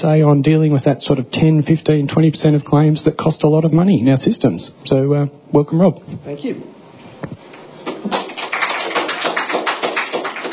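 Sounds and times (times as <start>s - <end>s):
speech: 0.0s - 6.8s
audience clapping at start of presentation: 7.8s - 10.5s.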